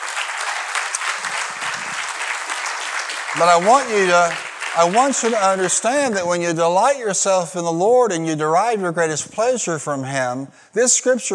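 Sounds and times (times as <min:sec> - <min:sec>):
audience applauding: 0:00.0 - 0:06.4
speech: 0:03.3 - 0:11.3.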